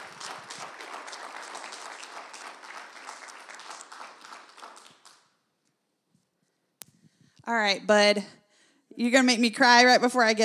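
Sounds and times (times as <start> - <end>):
church audience clapping: 0.0 - 5.5
speech: 7.5 - 8.4, 9.0 - 10.4.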